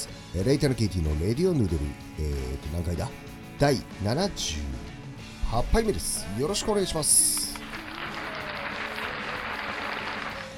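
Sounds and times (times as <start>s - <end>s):
speech: 0.3s - 4.9s, 5.5s - 7.4s
one person clapping hands: 7.2s - 10.5s.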